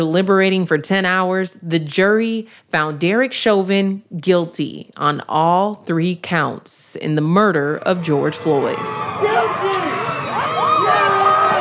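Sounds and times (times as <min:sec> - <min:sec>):
speech: 0:00.0 - 0:09.9
crowd cheering: 0:07.8 - 0:11.5.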